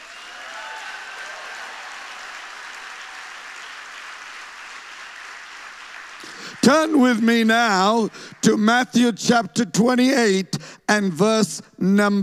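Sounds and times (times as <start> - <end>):
church audience applause in Little Falls welcoming guests: 0.0 - 8.7
speech: 6.2 - 12.2.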